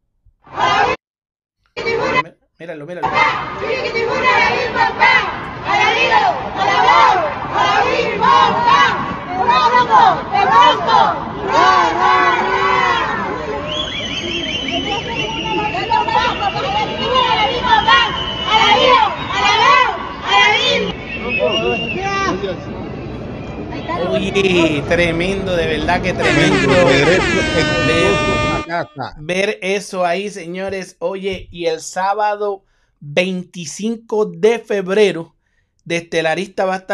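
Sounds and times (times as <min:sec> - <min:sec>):
large crowd cheering a boxer's arrival: 0:00.5 - 0:01.0, 0:01.8 - 0:02.3, 0:03.0 - 0:29.1
speech: 0:02.6 - 0:05.1, 0:24.0 - 0:36.9
high-pitched whistle: 0:13.0 - 0:23.7.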